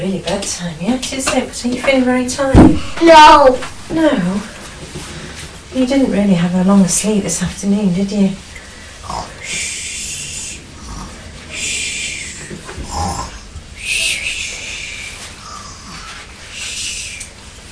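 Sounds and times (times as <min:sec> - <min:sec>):
speech: 0:00.0 - 0:04.6, 0:05.8 - 0:08.5
person snoring: 0:09.0 - 0:17.2.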